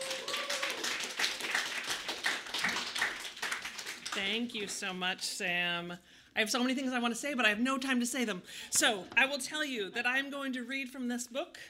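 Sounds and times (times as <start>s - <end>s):
audience clapping: 0.0s - 4.8s
speech: 4.2s - 11.6s.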